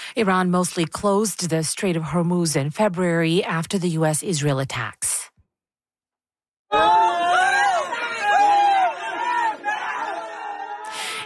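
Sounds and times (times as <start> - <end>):
speech: 0.2 - 5.3
rescuers cheering in a cave: 6.7 - 11.0.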